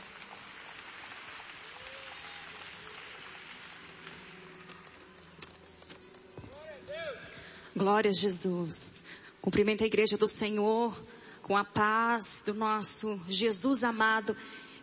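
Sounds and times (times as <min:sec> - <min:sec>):
audience applauding: 0:00.0 - 0:05.8
speech: 0:07.8 - 0:14.6.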